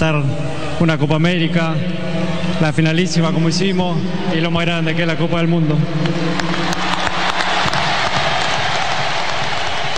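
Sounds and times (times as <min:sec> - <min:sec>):
speech: 0:00.0 - 0:06.8
massive crowd applause: 0:06.0 - 0:09.9.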